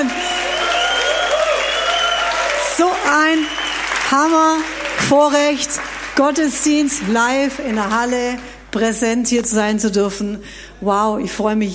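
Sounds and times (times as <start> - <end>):
audience applauding in a large hall: 0.0 - 8.7
speech: 3.1 - 11.7.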